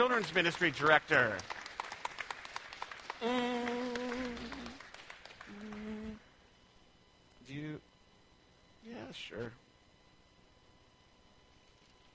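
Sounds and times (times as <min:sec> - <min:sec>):
speech: 0:00.0 - 0:01.6, 0:03.2 - 0:03.7, 0:09.1 - 0:09.6
audience clapping: 0:00.0 - 0:06.2.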